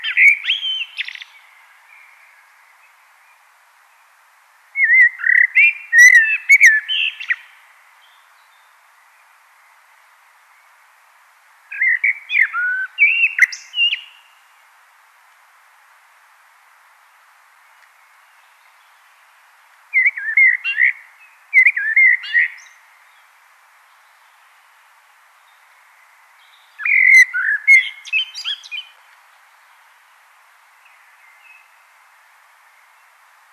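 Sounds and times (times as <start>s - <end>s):
common blackbird singing: 0.0s - 2.5s, 4.8s - 8.7s, 11.7s - 14.4s, 19.9s - 22.8s, 26.4s - 29.0s.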